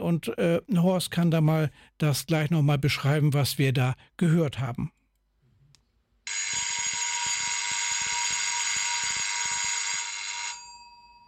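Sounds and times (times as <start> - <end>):
speech: 0.0 - 5.0
railway telephone bell call signal ringing: 6.3 - 11.2.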